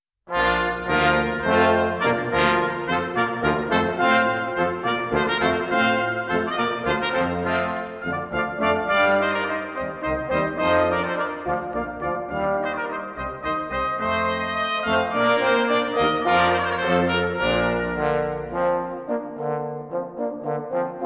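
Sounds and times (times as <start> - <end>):
brass band playing a hornpipe: 0.3 - 21.0.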